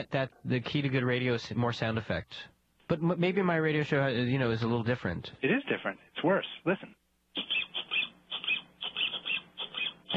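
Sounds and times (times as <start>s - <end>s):
speech: 0.0s - 7.5s
rubber duck squeaking: 7.4s - 10.1s.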